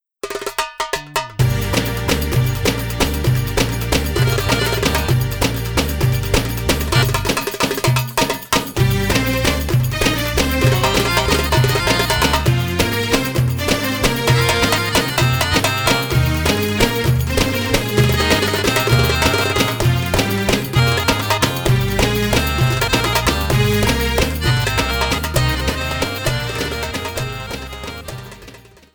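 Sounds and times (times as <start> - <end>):
bellydance music: 1.4 - 28.9.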